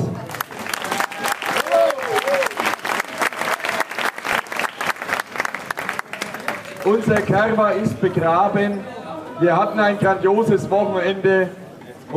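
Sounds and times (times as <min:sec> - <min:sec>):
audience applause: 0:00.2 - 0:07.0
brief cheer: 0:00.8 - 0:02.8
speech: 0:06.9 - 0:12.1.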